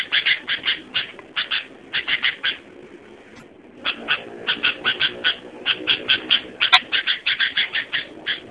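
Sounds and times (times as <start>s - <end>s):
sooty-headed bulbul chattering song: 0.0s - 2.7s, 3.8s - 8.4s.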